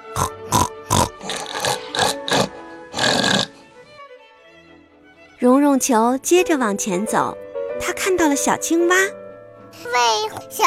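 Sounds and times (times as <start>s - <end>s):
pig oinking: 0.1s - 3.6s
speech: 5.4s - 9.2s, 9.8s - 10.6s.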